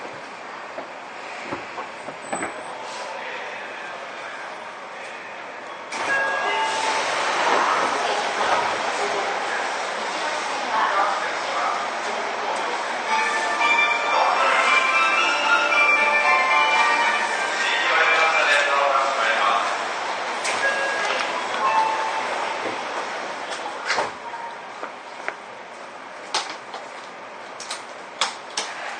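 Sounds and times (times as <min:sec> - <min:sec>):
Seibu 6000 series train rumbling: 0:00.0 - 0:28.9
faint voices: 0:02.6 - 0:24.8.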